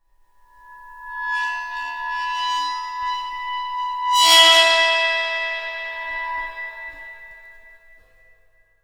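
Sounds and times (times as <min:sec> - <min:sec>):
cymbal: 0:00.6 - 0:08.2.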